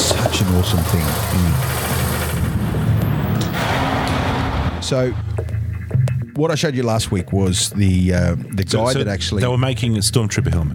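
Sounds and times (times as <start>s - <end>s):
vacuum forming machine pump running: 0.0s - 4.7s
speech: 0.4s - 2.0s, 4.9s - 5.6s, 6.4s - 10.7s.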